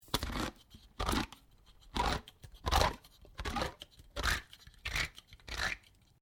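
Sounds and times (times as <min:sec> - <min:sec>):
can opener operating: 0:00.1 - 0:06.0.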